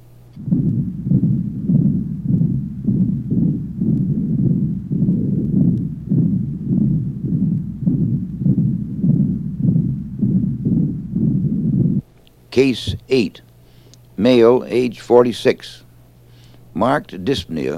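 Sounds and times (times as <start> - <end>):
rapid heartbeat with tachycardia heard over the lower neck: 0.4 - 12.1, 12.8 - 13.2
speech: 12.6 - 13.5, 14.2 - 15.8, 16.8 - 17.7.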